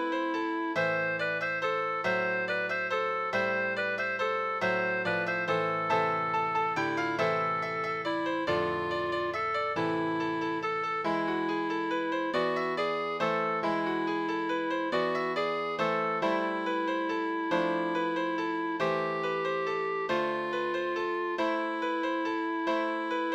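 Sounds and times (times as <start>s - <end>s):
piano and organ duet: 0.0s - 23.3s.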